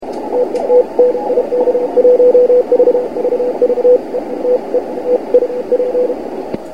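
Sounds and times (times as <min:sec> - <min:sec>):
CW Morse code beeps: 0:00.2 - 0:06.2.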